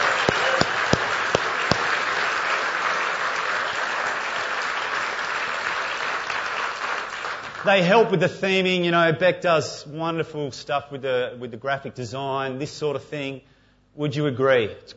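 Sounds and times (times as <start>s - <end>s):
audience applause: 0.0s - 7.8s
speech: 7.6s - 14.9s.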